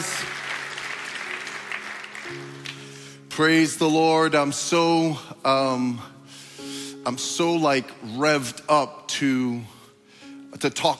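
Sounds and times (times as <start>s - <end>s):
church congregation clapping: 0.0s - 3.7s
speech: 3.4s - 6.1s, 7.1s - 9.8s, 10.5s - 10.9s.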